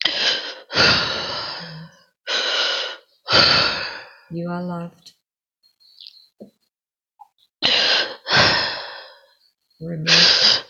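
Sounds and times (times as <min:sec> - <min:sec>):
person breathing deeply during a past life regression session: 0:00.0 - 0:04.3, 0:07.6 - 0:09.5
speech: 0:04.3 - 0:05.2, 0:09.8 - 0:10.5.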